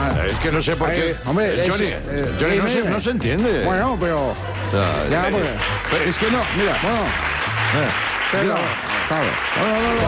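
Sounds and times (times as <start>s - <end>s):
speech: 0.3s - 10.0s
applause: 5.3s - 10.0s.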